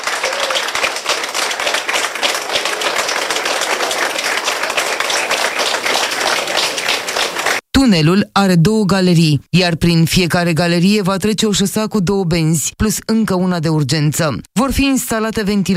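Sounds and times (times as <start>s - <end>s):
workers applauding in a tunnel: 0.0s - 7.6s
speech: 7.8s - 15.7s.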